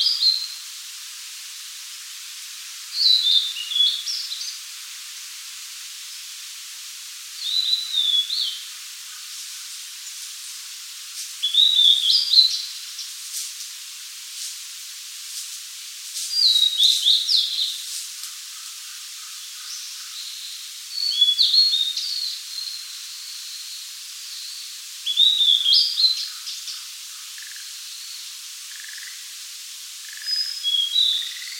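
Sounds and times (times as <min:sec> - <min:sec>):
Cyanoptila cyanomelana singing: 0:03.0 - 0:04.6, 0:07.4 - 0:09.3, 0:11.4 - 0:13.2, 0:16.4 - 0:17.8, 0:18.6 - 0:29.2, 0:30.0 - 0:31.5.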